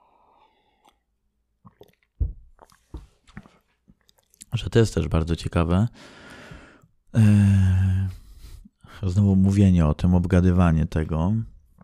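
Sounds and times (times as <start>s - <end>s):
person drinking water, sipping and swallowing: 0.4s - 4.5s
speech: 4.6s - 6.2s, 7.1s - 7.9s, 9.0s - 11.5s.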